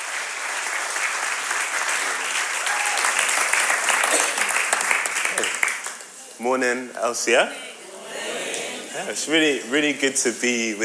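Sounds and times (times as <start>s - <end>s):
audience applause: 0.0s - 6.2s
speech: 6.4s - 7.7s, 9.0s - 10.8s.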